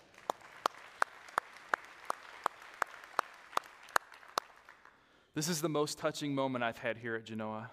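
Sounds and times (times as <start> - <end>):
church audience clapping in a steady rhythm: 0.0 - 5.3
speech: 5.4 - 7.7.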